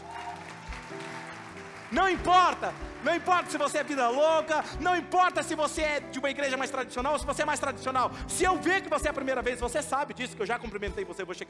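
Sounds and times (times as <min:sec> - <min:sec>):
audience applause: 0:00.0 - 0:05.5
speech: 0:01.9 - 0:11.4.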